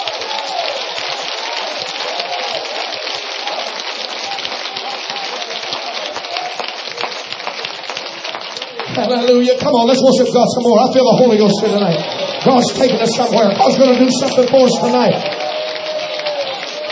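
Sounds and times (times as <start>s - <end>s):
crowd clapping: 0.0s - 16.9s
speech: 9.0s - 15.4s.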